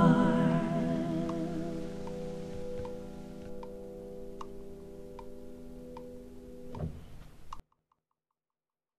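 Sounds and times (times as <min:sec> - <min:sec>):
person singing with piano: 0:00.0 - 0:02.3
piano: 0:00.0 - 0:07.6.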